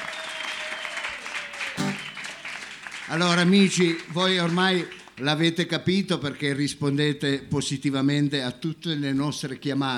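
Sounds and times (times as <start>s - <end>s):
audience applause: 0.0s - 5.0s
speech: 3.1s - 9.9s.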